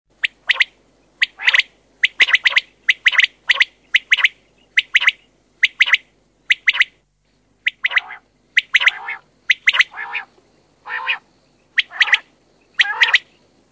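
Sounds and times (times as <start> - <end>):
Common quail calling: 0.2 - 7.0, 7.6 - 13.4.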